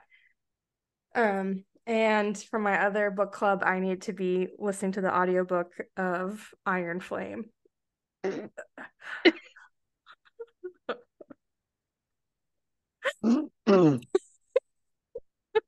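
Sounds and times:
speech: 0:01.2 - 0:07.6, 0:08.2 - 0:09.5, 0:13.2 - 0:14.2
fart noises made with mouth into a microphone: 0:08.2 - 0:08.6, 0:13.1 - 0:14.2.

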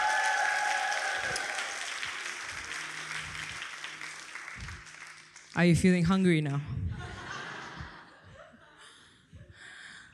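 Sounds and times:
audience applause: 0:00.0 - 0:06.0
speech: 0:05.6 - 0:06.7
laughter: 0:06.9 - 0:09.2.

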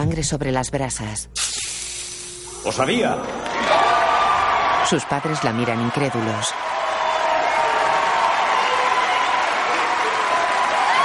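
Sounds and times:
speech: 0:00.0 - 0:01.6, 0:02.6 - 0:03.8, 0:04.9 - 0:06.7
crowd cheering and applauding in a science-fiction action film: 0:02.6 - 0:11.0.

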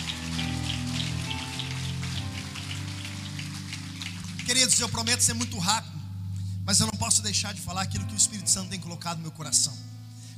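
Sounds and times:
audience applauding: 0:00.0 - 0:05.5
speech: 0:04.5 - 0:06.0, 0:06.7 - 0:10.2.

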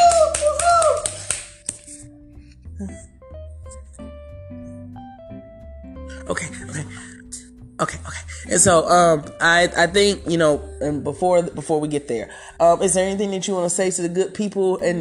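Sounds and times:
clapping: 0:00.0 - 0:02.0
speech: 0:06.3 - 0:07.0, 0:08.5 - 0:14.9.

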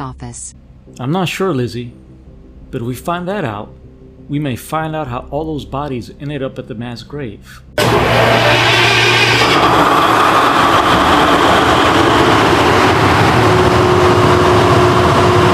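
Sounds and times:
speech: 0:00.0 - 0:02.1, 0:02.7 - 0:09.0
generator starting up and running: 0:07.8 - 0:15.5.

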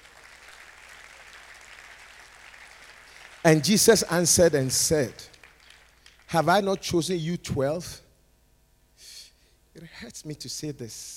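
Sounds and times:
audience clapping: 0:00.0 - 0:07.0
speech: 0:03.4 - 0:05.3, 0:06.3 - 0:08.0, 0:10.0 - 0:11.1.

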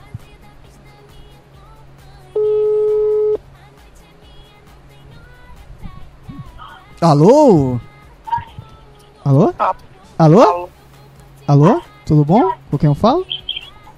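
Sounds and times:
telephone ringback tone: 0:02.4 - 0:03.4
speech: 0:07.0 - 0:07.9, 0:09.3 - 0:10.6, 0:11.5 - 0:13.3.

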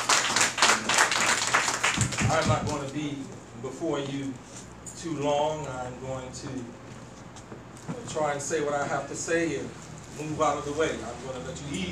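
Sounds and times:
audience applause: 0:00.0 - 0:02.6
speech: 0:02.3 - 0:06.8, 0:08.1 - 0:11.9.

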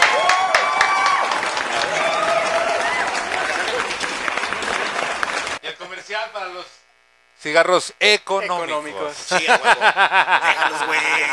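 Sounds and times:
applause: 0:00.0 - 0:05.6
laughter: 0:03.2 - 0:05.6, 0:09.2 - 0:11.3
speech: 0:07.4 - 0:11.3.

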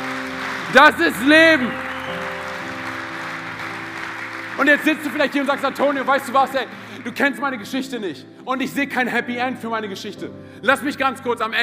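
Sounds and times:
crowd applauding: 0:00.0 - 0:07.6
speech: 0:00.7 - 0:01.8, 0:04.6 - 0:11.6.

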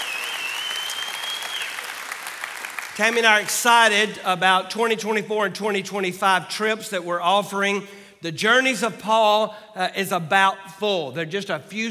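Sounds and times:
church congregation applauding during a worship service: 0:00.0 - 0:04.0
speech: 0:03.0 - 0:11.8.

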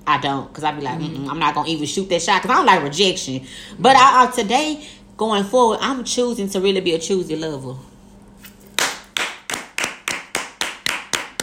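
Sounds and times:
speech: 0:00.1 - 0:07.9
hand clapping: 0:08.7 - 0:11.4.

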